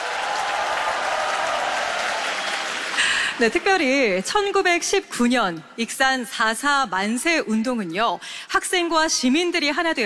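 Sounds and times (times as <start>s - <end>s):
audience applause: 0.0s - 3.8s
speech: 3.4s - 10.0s.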